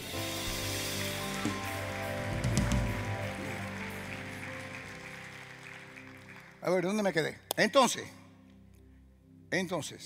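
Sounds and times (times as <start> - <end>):
audience applause: 0.6 - 7.2
speech: 6.6 - 8.2, 9.5 - 10.0.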